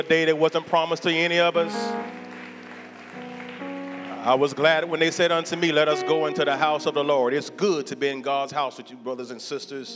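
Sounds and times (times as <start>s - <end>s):
speech: 0.0s - 2.2s, 4.2s - 9.9s
audience clapping hands: 0.0s - 5.6s
sustained organ chords: 0.0s - 9.9s.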